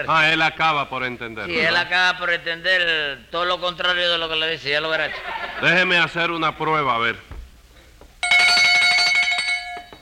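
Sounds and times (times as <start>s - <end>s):
speech: 0.0s - 7.3s
laughter: 4.9s - 6.0s
small hand bell ringing: 8.2s - 10.0s.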